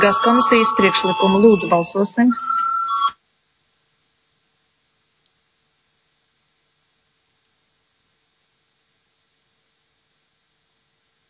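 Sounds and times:
speech: 0:00.0 - 0:02.5
parliamentary vote-call electronic bell ring: 0:00.0 - 0:03.2.

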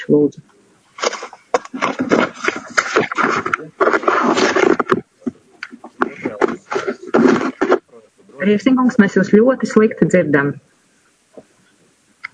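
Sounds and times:
speech: 0:00.0 - 0:00.6, 0:03.0 - 0:04.6, 0:08.4 - 0:10.7
paper rustling near a microphone: 0:01.0 - 0:07.8.

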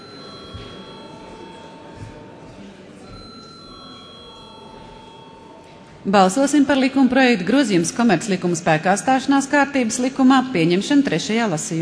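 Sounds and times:
parliament voting bell ringing: 0:00.0 - 0:02.1, 0:03.0 - 0:07.1
murmur of voices: 0:00.0 - 0:11.8
speech: 0:06.0 - 0:11.8.

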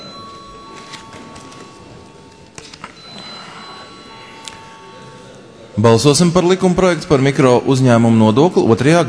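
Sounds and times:
parliament chamber bell signalling a vote: 0:00.0 - 0:08.0
soft murmur: 0:00.0 - 0:09.0
shuffling: 0:00.2 - 0:05.4
speech: 0:05.8 - 0:09.0.

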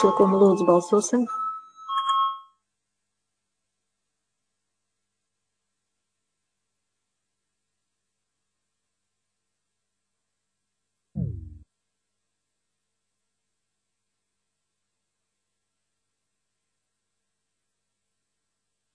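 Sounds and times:
speech: 0:00.0 - 0:01.4
parliamentary voting bell electronic chime: 0:00.0 - 0:02.6
low sound: 0:11.2 - 0:11.7.

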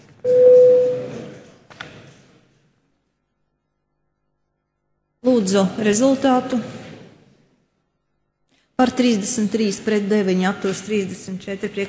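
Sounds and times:
parliament voting bell electronic tone: 0:00.3 - 0:01.2
speech: 0:05.3 - 0:06.8, 0:08.8 - 0:11.8.

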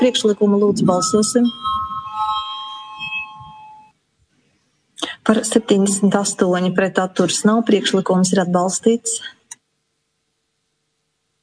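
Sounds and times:
speech: 0:00.0 - 0:01.8, 0:05.3 - 0:09.4
parliament chamber electric bell before vote: 0:00.0 - 0:03.9.

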